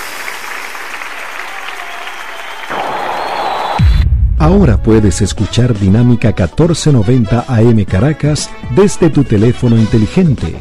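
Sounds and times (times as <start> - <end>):
audience clapping in applause: 0.0 - 4.0
speech: 4.4 - 10.6.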